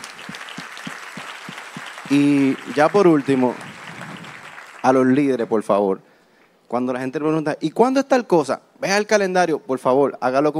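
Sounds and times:
audience applause: 0.0s - 5.4s
speech: 2.1s - 3.7s, 4.8s - 6.1s, 6.7s - 10.5s.

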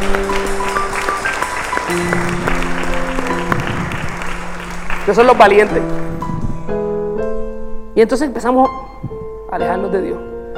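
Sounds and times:
audience applauding: 0.0s - 6.7s
sustained organ or keyboard chords: 0.0s - 10.5s
speech: 5.1s - 6.3s, 8.0s - 8.9s, 9.5s - 10.5s.

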